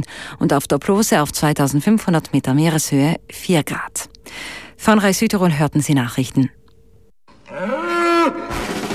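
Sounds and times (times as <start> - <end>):
speech: 0.0 - 6.6
bull mooing: 7.3 - 8.8.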